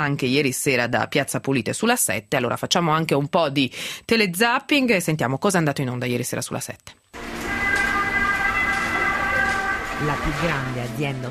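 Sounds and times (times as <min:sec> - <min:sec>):
speech: 0:00.0 - 0:07.0, 0:10.0 - 0:11.2
ambulance siren wailing at a large hospital: 0:07.2 - 0:11.2.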